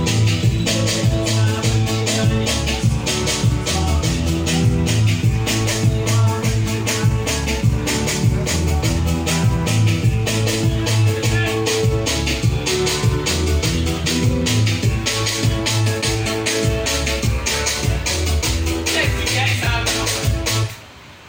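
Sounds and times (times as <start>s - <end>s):
Hausa beat: 0.0s - 20.8s.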